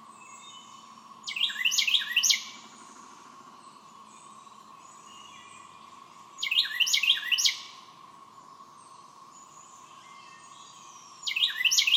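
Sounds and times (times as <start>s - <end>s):
Carolina wren singing rolling triple-note phrases: 0.2s - 2.6s, 6.4s - 7.8s, 9.4s - 11.9s.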